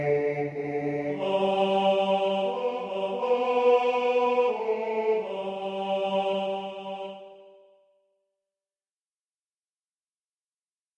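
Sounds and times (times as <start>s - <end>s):
tenor singing a hymn: 0.0s - 7.6s.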